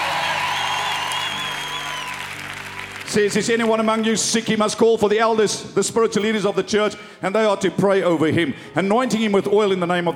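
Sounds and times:
church congregation clapping hands during a joyful service: 0:00.0 - 0:04.1
speech: 0:03.1 - 0:10.1.

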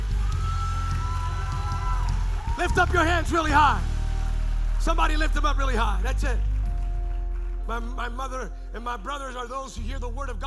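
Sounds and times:
audience clapping: 0:00.0 - 0:08.6
speech: 0:02.6 - 0:03.9, 0:04.8 - 0:06.5, 0:07.7 - 0:10.4.

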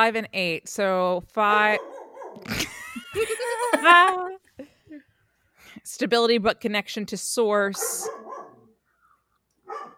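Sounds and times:
speech: 0:00.0 - 0:05.0, 0:05.8 - 0:08.5
female dog barking: 0:01.5 - 0:02.5, 0:07.8 - 0:08.8, 0:09.6 - 0:09.9
laughter: 0:02.4 - 0:04.4.

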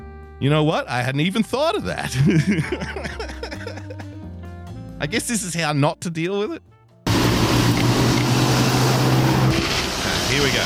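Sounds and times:
speech: 0:00.4 - 0:03.7, 0:05.0 - 0:06.7, 0:10.3 - 0:10.6
laughter: 0:01.8 - 0:04.3
small newish Ford Fiesta engine pulling up: 0:06.5 - 0:10.6.

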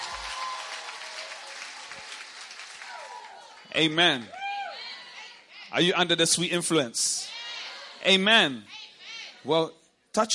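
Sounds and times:
church congregation clapping during a worship service: 0:00.0 - 0:04.3
speech: 0:03.7 - 0:04.4, 0:05.7 - 0:07.3, 0:08.0 - 0:08.8, 0:09.4 - 0:10.3.

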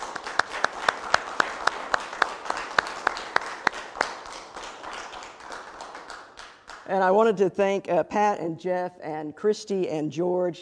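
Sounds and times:
audience applause: 0:00.0 - 0:06.8
speech: 0:06.9 - 0:10.6.

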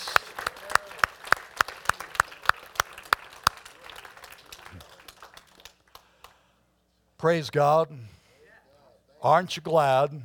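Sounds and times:
audience clapping in a steady rhythm: 0:00.0 - 0:06.5
speech: 0:07.2 - 0:08.2, 0:09.2 - 0:10.2.

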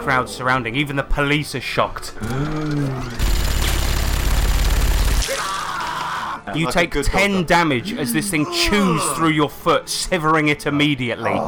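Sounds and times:
speech: 0:00.0 - 0:03.4, 0:06.5 - 0:11.4
minigun whirring up and firing: 0:03.2 - 0:05.3.

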